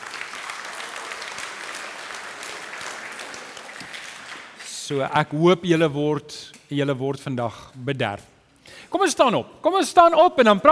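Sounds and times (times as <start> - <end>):
audience hand clapping applause: 0.0 - 4.7
speech: 4.9 - 8.3, 9.0 - 10.7.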